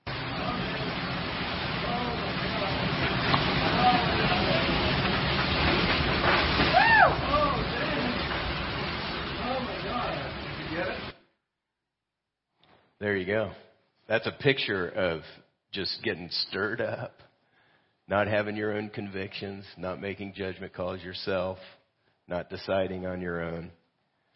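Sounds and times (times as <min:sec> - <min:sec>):
Hurricane Matthew wind and rain tearing at a tree: 0:00.0 - 0:11.2
speech: 0:13.0 - 0:17.2, 0:18.1 - 0:23.8.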